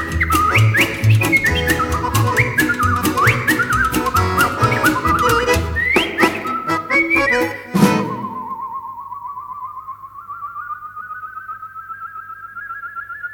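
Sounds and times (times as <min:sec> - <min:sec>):
one-man band playing ragtime: 0:00.0 - 0:08.4.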